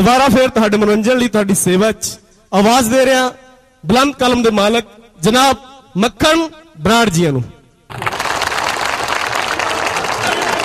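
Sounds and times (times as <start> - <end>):
speech: 0.0 - 8.1
audience applause welcoming a performer: 7.9 - 10.6.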